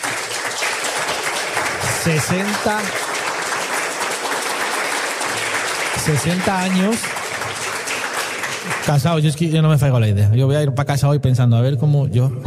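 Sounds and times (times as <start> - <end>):
crowd applause: 0.0 - 9.5
speech: 2.0 - 3.0, 6.0 - 7.2, 8.8 - 12.4.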